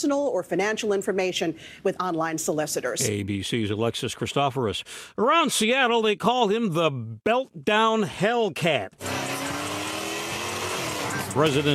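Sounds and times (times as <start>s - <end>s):
speech: 0.0s - 9.3s, 11.4s - 11.7s
souped-up Dodge Charger racing through downtown Seattle streets at night: 9.0s - 11.7s.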